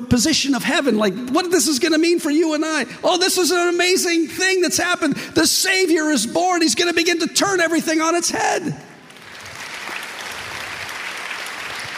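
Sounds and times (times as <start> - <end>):
speech: 0.0 - 8.9
audience clapping: 9.0 - 11.9.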